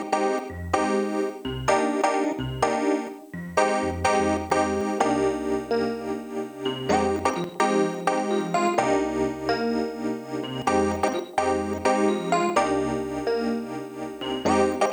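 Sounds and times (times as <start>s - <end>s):
full synthesizer: 0.0s - 14.9s.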